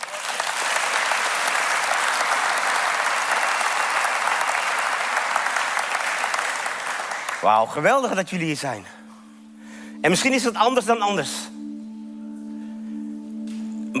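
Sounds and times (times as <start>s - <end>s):
audience applause: 0.0s - 7.5s
speech: 7.4s - 9.0s, 10.0s - 11.6s.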